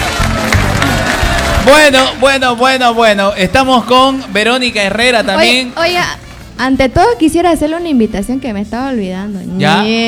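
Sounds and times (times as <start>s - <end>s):
crowd applauding: 0.0s - 5.2s
speech: 1.6s - 10.0s.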